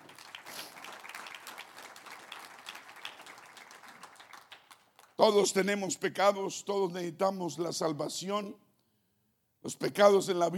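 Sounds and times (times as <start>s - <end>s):
crowd applause: 0.0s - 5.1s
speech: 5.2s - 8.6s, 9.6s - 10.5s.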